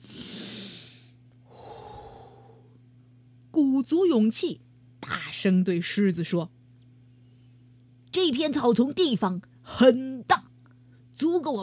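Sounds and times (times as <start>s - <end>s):
deep breath: 0.0s - 2.8s
speech: 3.6s - 6.6s, 8.2s - 10.4s, 11.2s - 11.6s.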